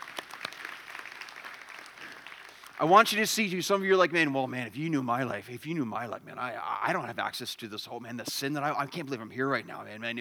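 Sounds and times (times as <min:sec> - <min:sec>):
audience applause: 0:00.0 - 0:03.2
speech: 0:02.8 - 0:10.1.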